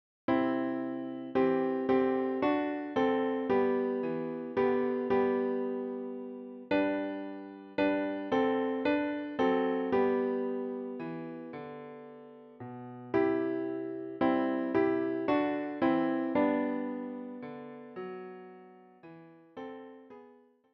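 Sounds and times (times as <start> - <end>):
Christmas song on piano: 0.3 - 20.4.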